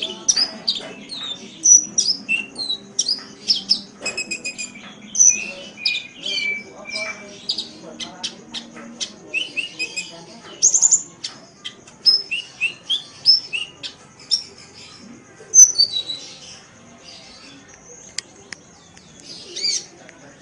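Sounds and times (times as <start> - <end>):
Oriental magpie-robin singing: 0.0 - 14.5, 15.6 - 16.4.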